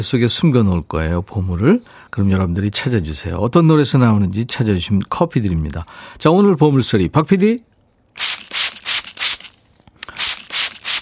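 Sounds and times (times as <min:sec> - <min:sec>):
speech: 0:00.0 - 0:08.3
mist spray bottle spritzing: 0:08.2 - 0:10.9.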